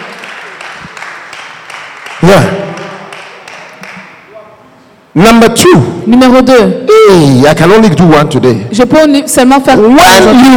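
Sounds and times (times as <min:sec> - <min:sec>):
audience clapping: 0:00.0 - 0:04.3
speech: 0:02.2 - 0:02.8, 0:05.2 - 0:10.5.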